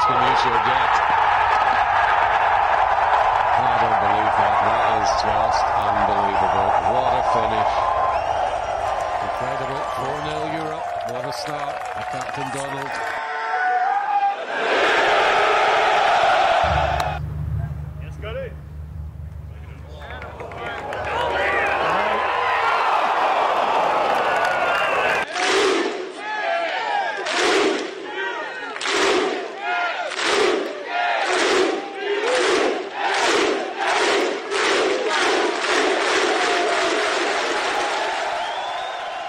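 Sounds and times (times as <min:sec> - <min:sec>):
frenzied golf crowd cheering: 0:00.0 - 0:18.6, 0:19.4 - 0:39.2
speech: 0:00.1 - 0:01.2, 0:04.4 - 0:07.9, 0:09.4 - 0:13.1.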